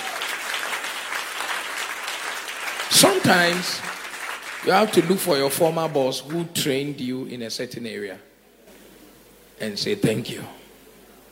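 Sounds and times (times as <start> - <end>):
audience applauding: 0.0 - 6.4
speech: 2.9 - 3.9, 4.6 - 8.3, 9.6 - 10.6.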